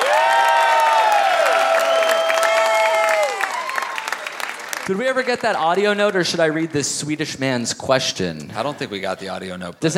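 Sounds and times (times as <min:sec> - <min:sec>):
audience applause: 0:00.0 - 0:06.2
speech: 0:04.9 - 0:09.9.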